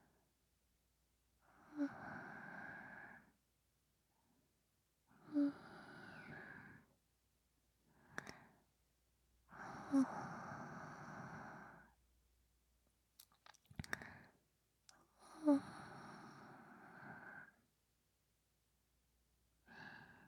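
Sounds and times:
person breathing in sleep: 0:01.5 - 0:03.3, 0:05.1 - 0:06.9, 0:09.5 - 0:12.0, 0:15.2 - 0:17.6, 0:19.7 - 0:20.2.

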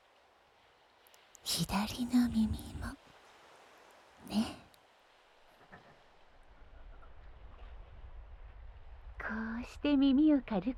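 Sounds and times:
ocean waves: 0:00.0 - 0:06.5
speech: 0:01.5 - 0:03.1, 0:04.2 - 0:04.6, 0:09.8 - 0:10.7.

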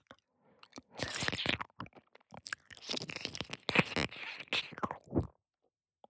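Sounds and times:
left ear licking loop: 0:01.0 - 0:01.6, 0:02.5 - 0:05.3.

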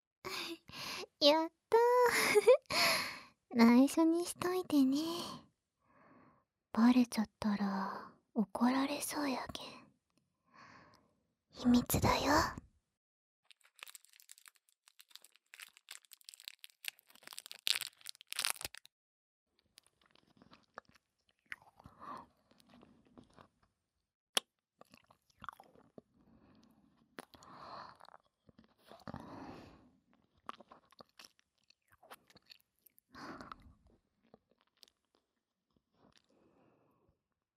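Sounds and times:
speech: 0:01.2 - 0:01.6, 0:02.3 - 0:05.4, 0:06.8 - 0:09.8, 0:11.6 - 0:12.6
crinkles: 0:13.4 - 0:18.9
person chewing and eating food: 0:13.5 - 0:18.9, 0:19.8 - 0:23.6, 0:24.8 - 0:26.0, 0:26.6 - 0:29.2, 0:30.1 - 0:33.6.

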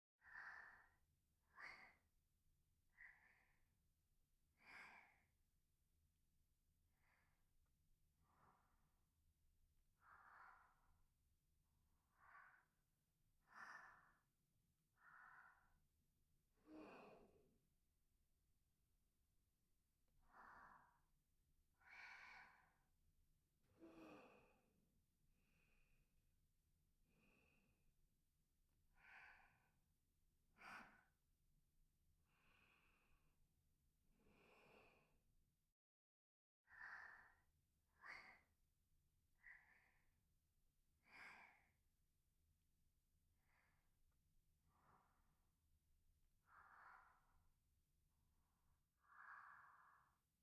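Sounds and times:
person breathing softly: 0:00.2 - 0:02.1, 0:02.9 - 0:03.7, 0:04.5 - 0:05.4, 0:06.9 - 0:09.2, 0:09.9 - 0:11.2, 0:11.8 - 0:15.9, 0:16.5 - 0:17.6, 0:20.2 - 0:22.9, 0:23.8 - 0:24.7, 0:25.4 - 0:26.1, 0:27.1 - 0:27.9, 0:28.9 - 0:29.8, 0:30.5 - 0:31.2, 0:32.2 - 0:33.4, 0:34.2 - 0:35.2, 0:36.7 - 0:38.5, 0:39.3 - 0:40.1, 0:41.0 - 0:41.8, 0:43.4 - 0:45.6, 0:46.4 - 0:50.3.

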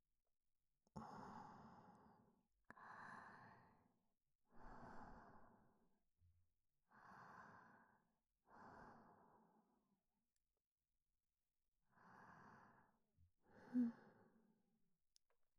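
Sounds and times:
breathing in the left ear: 0:01.0 - 0:05.8, 0:06.9 - 0:09.9, 0:11.9 - 0:14.5.

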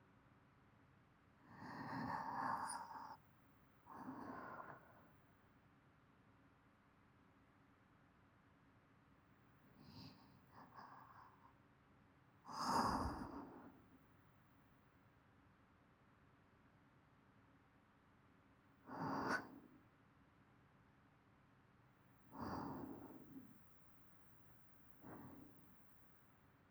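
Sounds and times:
person breathing in sleep loop: 0:01.5 - 0:03.2, 0:03.9 - 0:05.0, 0:12.5 - 0:13.9, 0:18.9 - 0:19.7, 0:22.4 - 0:23.6, 0:25.0 - 0:25.6.

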